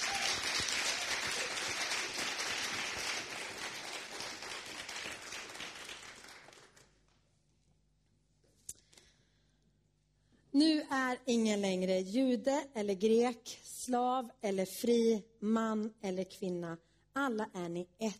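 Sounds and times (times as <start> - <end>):
crowd applauding: 0.0 - 7.0
speech: 10.6 - 18.1.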